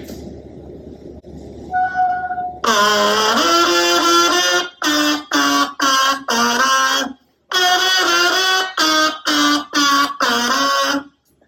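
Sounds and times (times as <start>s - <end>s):
electric kazoo played through an amplifier: 2.6s - 11.2s.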